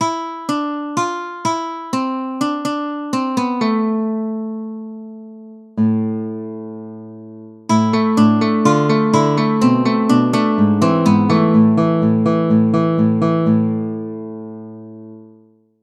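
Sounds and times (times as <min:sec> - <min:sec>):
nylon string guitar: 0:00.0 - 0:15.6.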